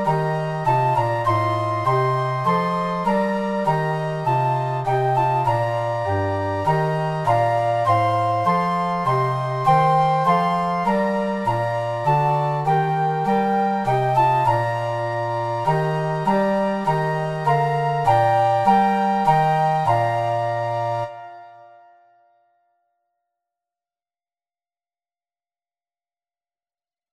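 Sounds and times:
trio of flutes and clarinet playing: 0:00.0 - 0:21.3.

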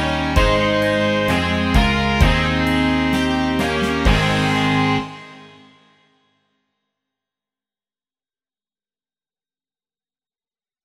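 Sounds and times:
rock music: 0:00.0 - 0:06.0.

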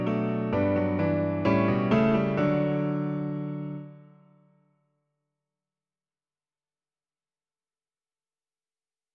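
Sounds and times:
piano version of a hymn: 0:00.0 - 0:04.4.

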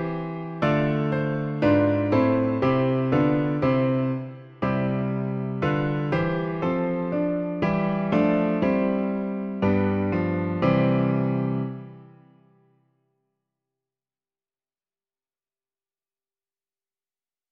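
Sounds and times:
piano: 0:00.0 - 0:13.0.

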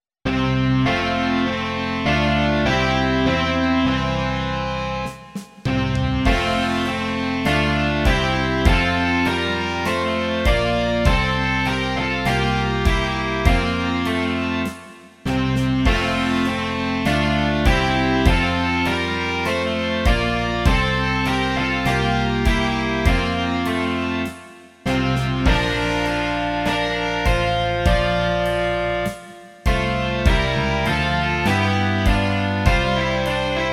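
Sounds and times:
rock music: 0:00.3 - 0:33.7.

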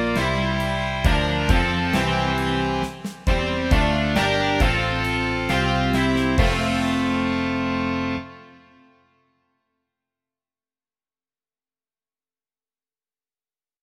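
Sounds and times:
rock music: 0:00.0 - 0:08.9.

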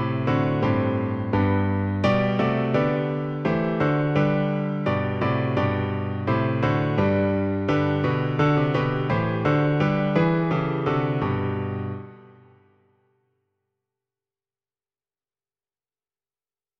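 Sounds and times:
piano version of a piece: 0:00.0 - 0:12.8.

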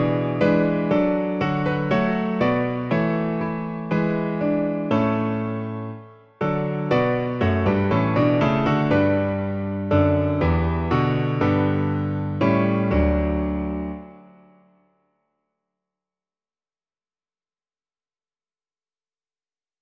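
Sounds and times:
piano version of a song: 0:00.0 - 0:14.8.

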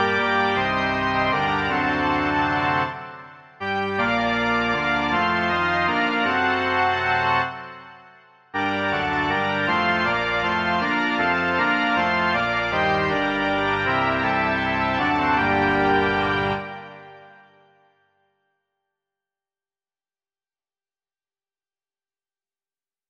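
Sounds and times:
organ: 0:00.0 - 0:17.9.

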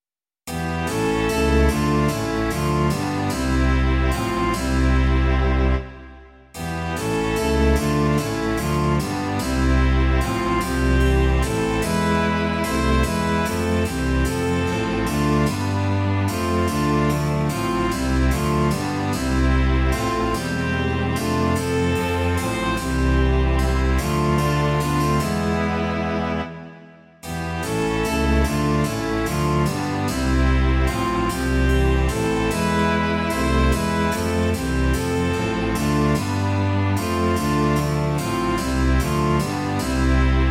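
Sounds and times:
string quartet with basso continuo: 0:00.6 - 0:40.4.

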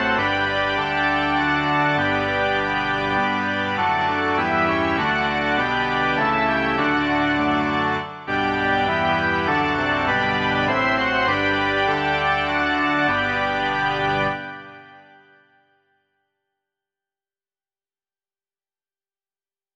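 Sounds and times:
organ: 0:00.0 - 0:15.6.

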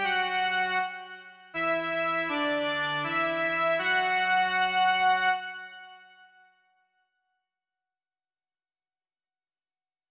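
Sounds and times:
Czech hymn melody only: 0:00.0 - 0:06.1.

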